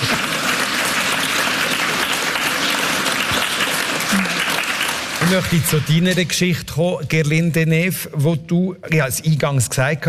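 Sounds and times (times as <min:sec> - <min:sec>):
audience applause: 0:00.0 - 0:06.2
speech: 0:05.3 - 0:10.0.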